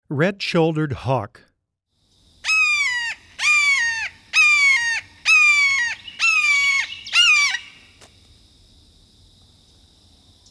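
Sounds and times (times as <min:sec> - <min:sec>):
red-shouldered hawk screaming: 0:02.4 - 0:08.1.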